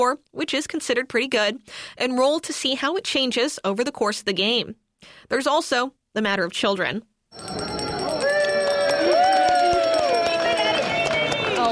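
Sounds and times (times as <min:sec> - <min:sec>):
speech: 0:00.0 - 0:07.6
bell ringing: 0:07.3 - 0:11.3.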